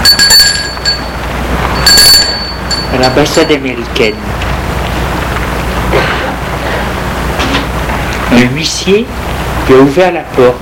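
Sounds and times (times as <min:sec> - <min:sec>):
doorbell ringing at embassy door: 0:00.0 - 0:04.3
low hum: 0:00.0 - 0:10.6
speech: 0:03.0 - 0:04.5, 0:08.4 - 0:10.6.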